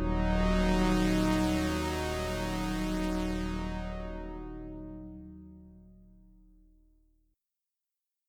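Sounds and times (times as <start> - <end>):
synthesizer chords: 0.0 - 5.5.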